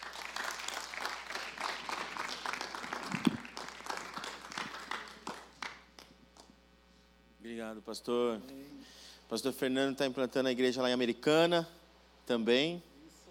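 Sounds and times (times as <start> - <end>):
crowd applauding: 0.0 - 6.1
speech: 7.6 - 8.6, 9.3 - 12.9.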